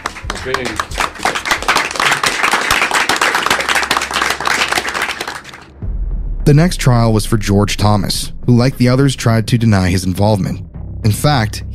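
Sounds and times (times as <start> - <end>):
audience round of applause: 0.0 - 5.7
speech: 0.4 - 1.1, 6.4 - 11.7.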